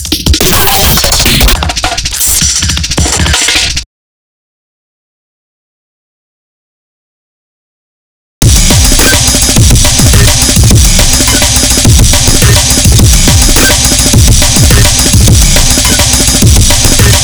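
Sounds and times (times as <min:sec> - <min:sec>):
drums: 0:00.0 - 0:03.9, 0:08.4 - 0:17.2.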